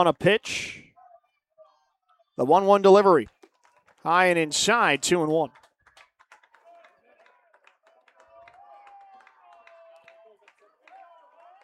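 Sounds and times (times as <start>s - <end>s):
speech: 0.0s - 0.8s, 2.4s - 3.3s, 4.0s - 5.6s
stadium fans clapping in a steady rhythm: 3.2s - 11.6s
stadium fans cheering: 8.1s - 11.6s.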